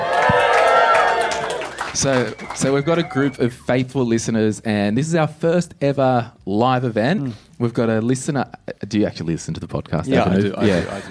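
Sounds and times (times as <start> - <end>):
live audience cheering and clapping: 0.0 - 3.6
speech: 2.0 - 11.0.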